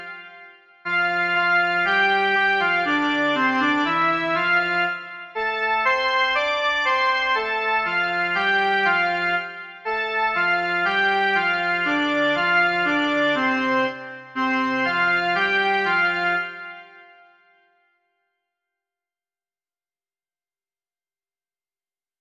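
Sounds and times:
melody: 0:00.9 - 0:16.8.

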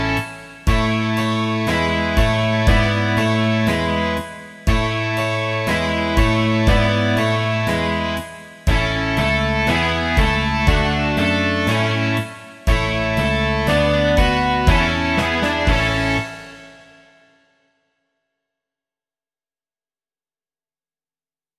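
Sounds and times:
rock music: 0:00.0 - 0:17.0.

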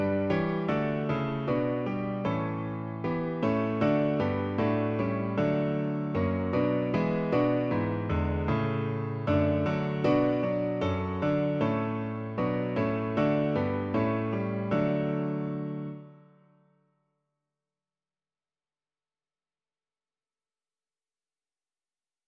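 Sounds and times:
piano version: 0:00.0 - 0:16.3.

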